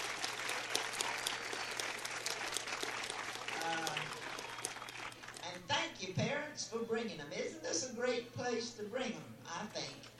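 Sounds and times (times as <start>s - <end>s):
audience applause for the children in the crowd: 0.0s - 5.4s
speech: 6.0s - 10.1s.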